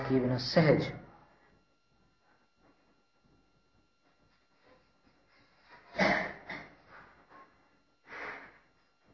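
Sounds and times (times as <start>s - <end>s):
speech: 0.1s - 1.0s
deep breathing during seated meditation: 6.7s - 8.8s.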